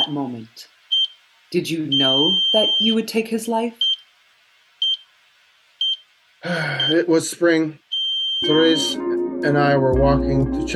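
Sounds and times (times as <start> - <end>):
faint steady hiss: 0.0 - 9.2
speech: 0.1 - 0.8, 1.5 - 3.9, 6.4 - 7.8, 8.4 - 10.7
medical monitor beeps: 0.9 - 3.1, 3.8 - 4.1, 4.8 - 5.1, 5.8 - 7.2, 7.9 - 9.0.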